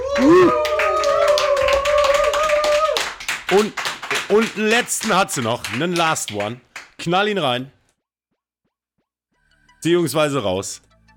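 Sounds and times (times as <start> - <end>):
high held cheer: 0.0 - 6.6
audience clapping: 0.0 - 7.5
speech: 3.5 - 7.8, 9.8 - 10.9.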